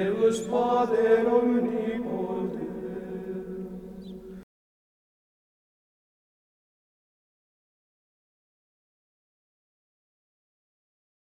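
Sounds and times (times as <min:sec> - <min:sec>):
Gregorian chant vocal music: 0:00.0 - 0:04.4.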